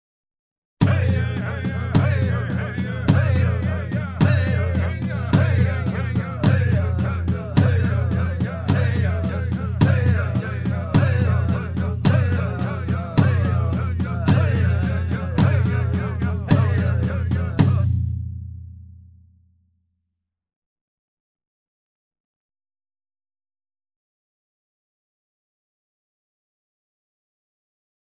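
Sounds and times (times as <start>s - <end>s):
indigenous batuque drumming: 0.8s - 18.1s.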